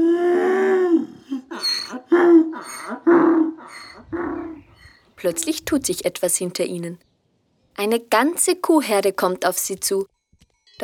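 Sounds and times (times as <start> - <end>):
donkey Jakob braying loudly: 0.0 - 5.0
speech: 5.2 - 7.1, 7.8 - 10.1.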